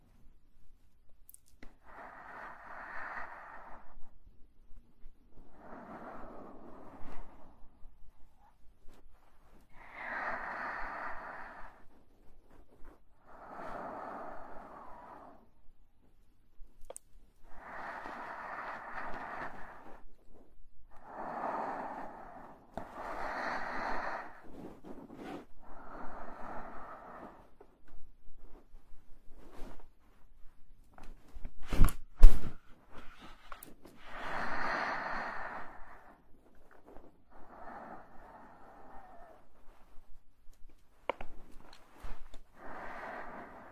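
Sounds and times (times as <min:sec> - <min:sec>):
slow airy breathing: 0:01.6 - 0:16.2, 0:17.4 - 0:43.7.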